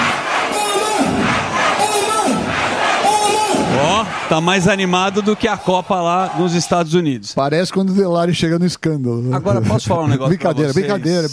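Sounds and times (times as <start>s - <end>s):
large crowd roaring and cheering in celebration: 0.0s - 7.2s
speech: 4.3s - 11.3s.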